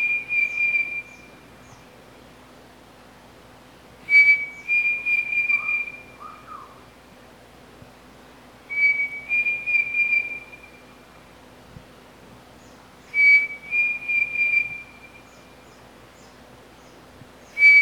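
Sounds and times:
pavonine cuckoo song: 0.0s - 1.8s, 4.1s - 6.8s, 8.7s - 11.0s, 13.0s - 15.8s, 17.4s - 17.8s.

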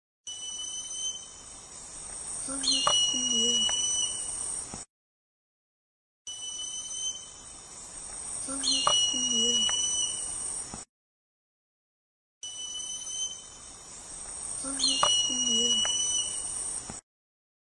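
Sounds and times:
uiracu falto singing: 0.3s - 1.5s, 2.4s - 4.3s, 6.3s - 7.7s, 8.4s - 10.3s, 12.4s - 14.0s, 14.6s - 16.5s.

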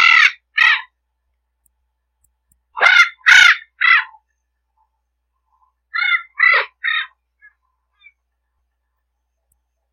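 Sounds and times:
Spix's macaw calling: 0.0s - 1.0s, 2.8s - 4.2s, 5.9s - 8.2s.

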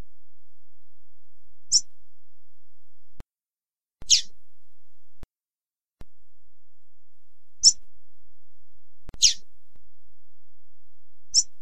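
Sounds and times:
double-collared seedeater chirps: 4.0s - 4.3s, 9.2s - 9.4s, 11.3s - 11.6s.

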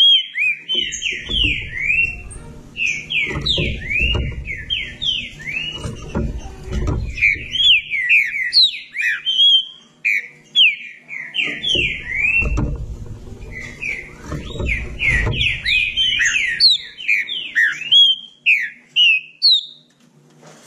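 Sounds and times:
Green-winged saltator song: 0.0s - 19.9s
low rumbling thumps: 0.7s - 8.6s, 11.4s - 17.2s.

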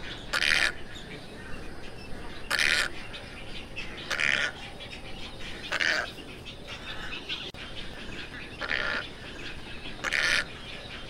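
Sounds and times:
tricolored heron squawks: 0.0s - 1.6s, 2.3s - 3.3s, 4.0s - 4.6s, 5.5s - 11.0s.

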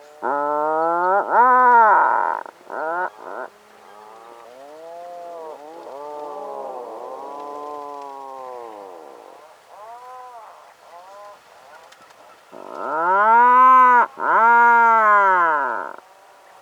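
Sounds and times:
puffin calling: 0.2s - 3.5s, 12.5s - 16.0s.

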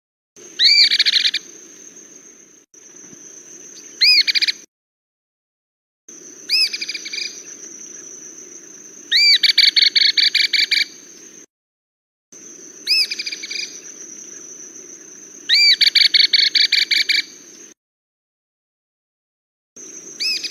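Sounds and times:
cliff flycatcher calling: 0.4s - 4.7s, 6.1s - 11.5s, 12.4s - 17.8s, 19.8s - 20.4s.

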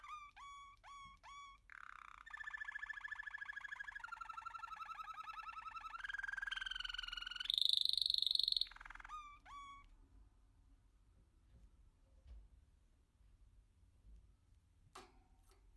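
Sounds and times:
American canary song with sharp chips, clicks and rolling trills: 0.0s - 9.9s.

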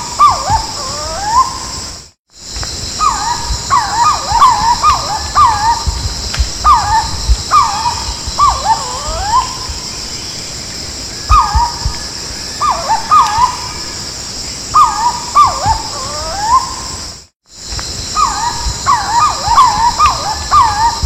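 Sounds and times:
Purple-throated fruitcrow giving soft whistled calls: 3.0s - 10.6s, 11.2s - 14.0s, 14.7s - 16.9s, 18.1s - 21.0s.

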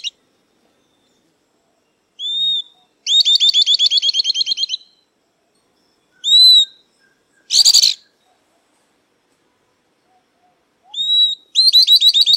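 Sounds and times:
southern beardless-tyrannulet song: 2.2s - 5.0s, 6.1s - 8.4s, 10.8s - 12.3s.

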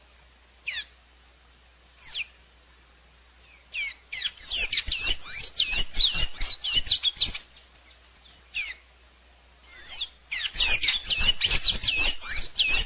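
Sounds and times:
blue dacnis singing high twittering and chips: 0.6s - 1.0s, 2.0s - 2.4s, 3.4s - 8.9s, 9.6s - 12.8s.

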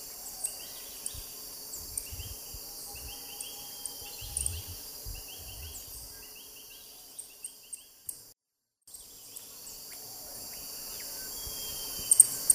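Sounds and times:
upturned-bill hummingbird singing: 0.0s - 8.3s, 8.9s - 12.5s.

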